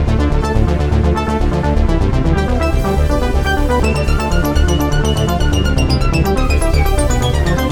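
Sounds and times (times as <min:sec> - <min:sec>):
keyboard arpeggio in D: 0:00.0 - 0:07.7.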